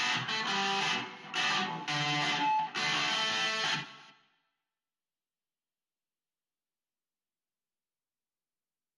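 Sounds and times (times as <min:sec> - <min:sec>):
electric guitar: 0:00.0 - 0:04.2.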